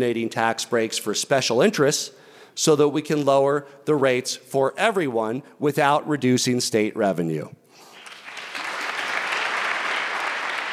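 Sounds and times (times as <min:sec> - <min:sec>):
speech: 0:00.0 - 0:07.6
lawmakers applauding after speech: 0:07.8 - 0:10.7.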